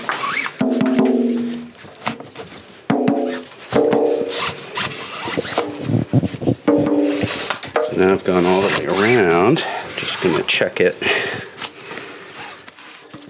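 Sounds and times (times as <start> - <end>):
scuffs and knocks: 0.0 - 9.3
ropes on a drum hauled tight around wooden hoops: 0.0 - 10.6
speech: 8.0 - 11.4.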